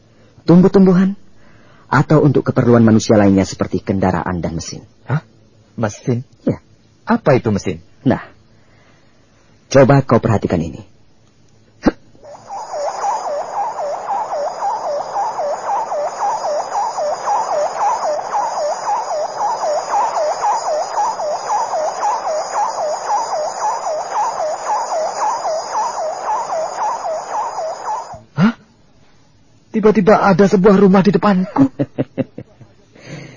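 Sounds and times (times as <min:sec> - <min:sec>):
speech: 0:00.4 - 0:01.2, 0:01.9 - 0:08.4, 0:09.7 - 0:10.9, 0:29.8 - 0:32.0
sharp clicks: 0:12.2 - 0:28.2
sci-fi spaceship arriving warbling electronic tone: 0:12.2 - 0:28.3.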